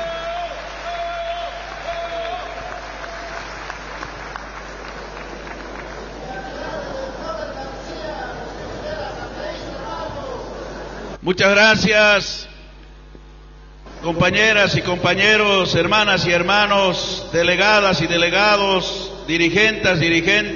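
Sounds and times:
audience clapping: 0.0s - 7.3s
speech: 11.2s - 12.4s, 14.0s - 20.5s.

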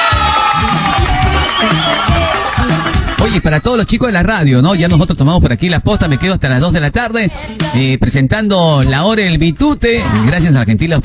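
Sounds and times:
cheering: 0.0s - 3.3s
applause: 0.0s - 3.4s
speech: 3.4s - 11.0s.

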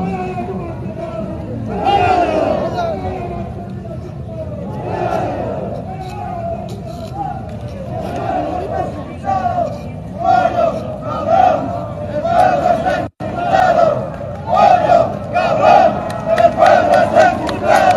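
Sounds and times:
large marching crowd cheering and chanting: 0.0s - 3.6s, 4.2s - 17.9s
marching crowd clapping: 14.0s - 17.9s.

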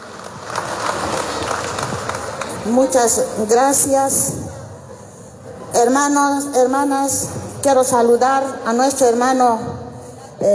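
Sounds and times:
crowd applause at a political gathering: 0.0s - 2.8s
speech: 2.7s - 4.4s, 5.8s - 9.8s, 10.4s - 10.5s.

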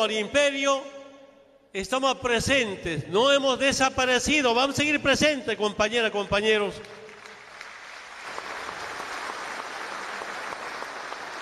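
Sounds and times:
speech: 0.0s - 1.0s, 1.7s - 7.0s
applause: 6.8s - 11.4s.

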